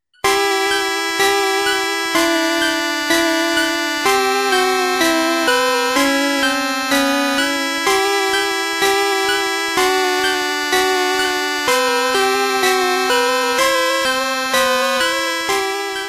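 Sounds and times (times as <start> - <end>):
Game Boy startup sound, Japanese version: 0.3 - 16.0
buzzy sustained chiptune chords pulsing on a steady beat: 0.3 - 16.0.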